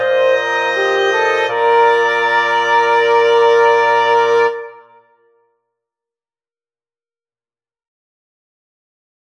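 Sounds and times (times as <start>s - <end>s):
wind quartet playing: 0.0s - 5.0s.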